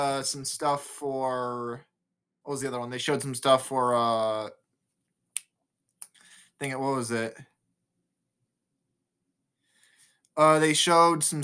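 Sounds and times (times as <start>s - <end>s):
speech: 0.0s - 4.6s, 6.6s - 7.5s, 10.4s - 11.4s
finger snaps: 5.3s - 6.8s.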